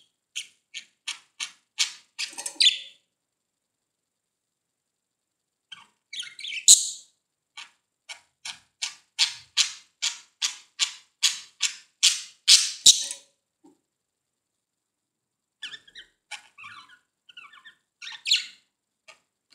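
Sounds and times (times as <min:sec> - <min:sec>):
budgerigar chirping: 0:00.4 - 0:03.0, 0:05.7 - 0:13.2, 0:15.6 - 0:18.6.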